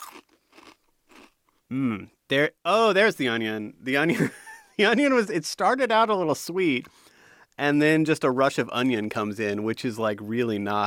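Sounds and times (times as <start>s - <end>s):
crunching on plain chocolate-flavored Chex cereal: 0.0s - 1.4s
speech: 1.7s - 10.8s.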